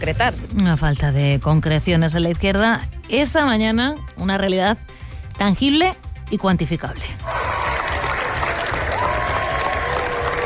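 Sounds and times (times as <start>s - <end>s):
speech: 0.0s - 7.4s
long standing ovation at Cannes film festival: 7.2s - 10.4s.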